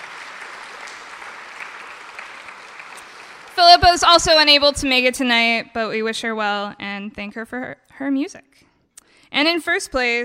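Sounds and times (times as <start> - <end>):
audience applause: 0.0 - 4.4
speech: 3.6 - 8.7, 9.3 - 10.2.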